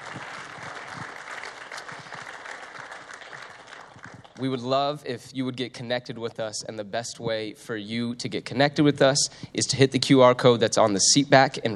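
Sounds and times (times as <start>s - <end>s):
crowd applause: 0.0s - 4.5s
speech: 4.4s - 11.7s.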